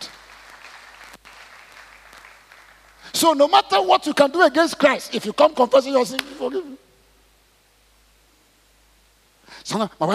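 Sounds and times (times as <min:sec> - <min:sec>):
congregation clapping hands during a church sermon: 0:00.0 - 0:03.6
speech: 0:03.2 - 0:06.8, 0:09.7 - 0:10.1.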